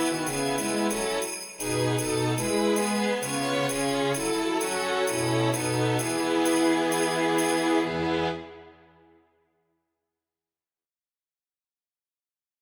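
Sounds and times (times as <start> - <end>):
carol accompaniment: 0.0 - 8.8.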